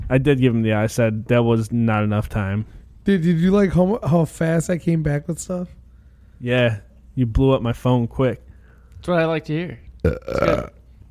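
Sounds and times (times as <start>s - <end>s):
speech: 0.1s - 5.8s, 6.4s - 8.4s, 9.0s - 10.8s
burp: 10.0s - 11.0s.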